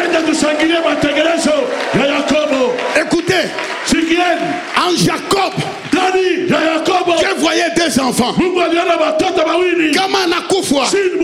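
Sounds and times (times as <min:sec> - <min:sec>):
church congregation shouting and cheering: 0:00.0 - 0:11.2
speech: 0:07.6 - 0:11.2.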